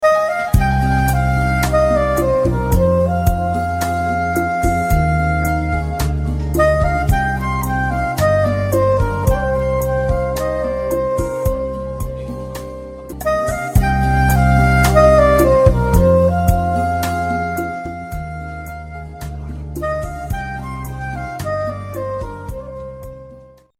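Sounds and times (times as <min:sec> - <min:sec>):
flute ringtone: 0:00.0 - 0:23.7.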